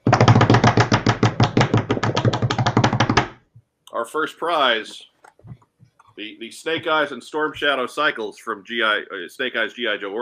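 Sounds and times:
drum roll: 0.0s - 3.3s
speech: 4.0s - 5.1s, 6.2s - 10.1s.

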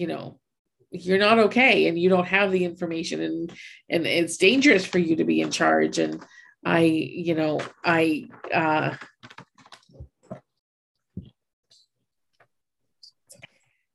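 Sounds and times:
speech: 0.0s - 9.1s
computer keyboard keys clicking under a cat's paws: 8.9s - 10.0s.

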